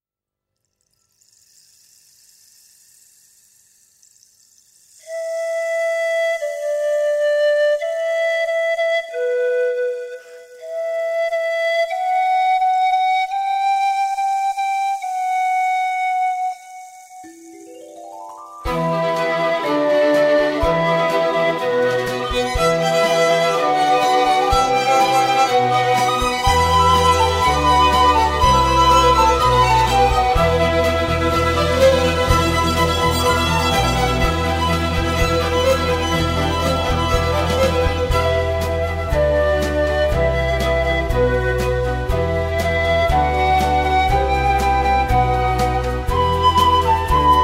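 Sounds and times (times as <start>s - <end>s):
instrumental music: 0.9s - 47.4s.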